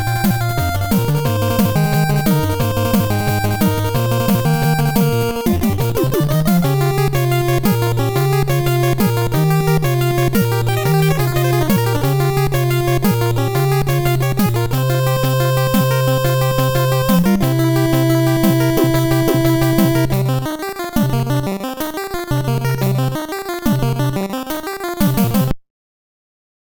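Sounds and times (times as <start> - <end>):
background music: 0.0 - 25.5.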